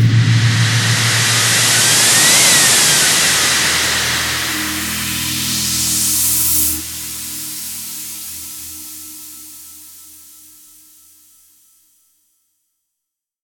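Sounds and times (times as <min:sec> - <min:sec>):
uplifter rising riser effect: 0:00.0 - 0:06.8.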